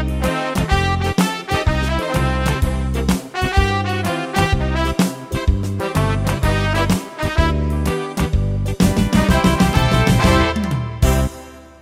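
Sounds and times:
Yamaha PSR-3000 keyboard factory accompaniment style: 0.0 - 11.8.

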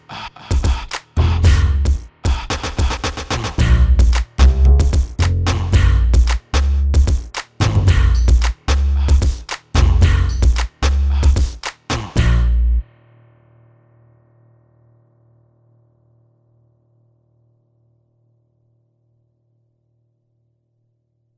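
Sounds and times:
drum machine beatbox pattern: 0.5 - 12.4.

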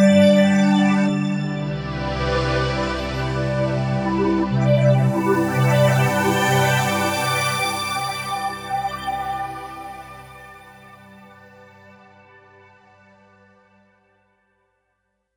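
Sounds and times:
Kawai K5000S synthesizer pad: 0.0 - 12.2.

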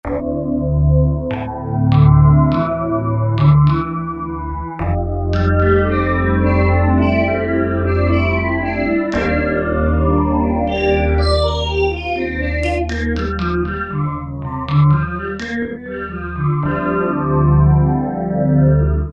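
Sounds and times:
Korg T3 wavesweep: 0.0 - 19.1.

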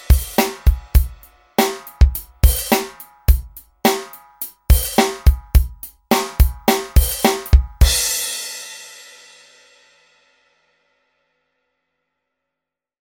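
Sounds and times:
pop drum kit: 0.0 - 9.9.

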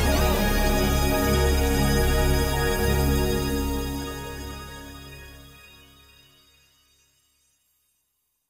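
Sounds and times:
Korg Wavestation pad from a TR-Rack synthesizer: 0.0 - 6.8.

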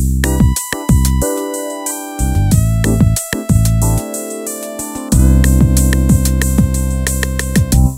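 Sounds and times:
keyboard accompaniment styles: 0.2 - 7.9.

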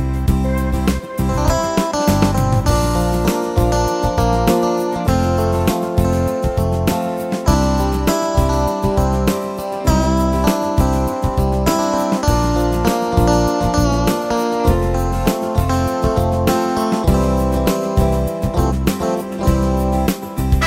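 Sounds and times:
pop guitar accompaniment style on Yamaha PSR-3000 keyboard: 0.0 - 20.6.

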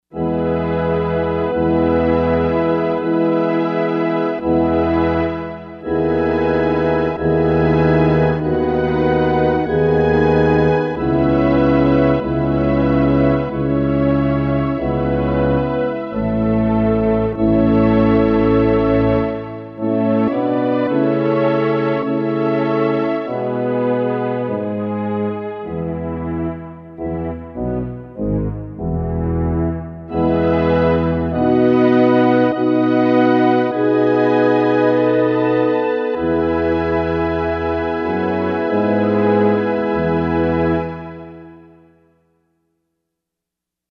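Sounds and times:
orchestra on a Korg MSC-4S: 0.1 - 41.9.

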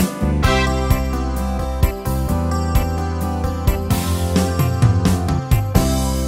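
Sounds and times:
1960s 8 beat pop and rock rhythm: 0.0 - 6.1.

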